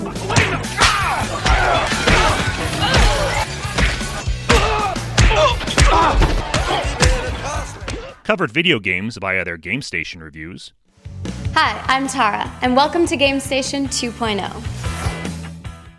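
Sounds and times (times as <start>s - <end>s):
punches to the face from the film Road House: 0.3s - 8.2s
speech: 8.3s - 15.0s.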